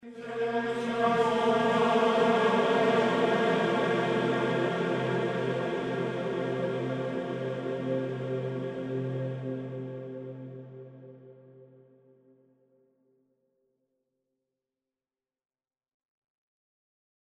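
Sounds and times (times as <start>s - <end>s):
soundscape: 0.0s - 11.6s.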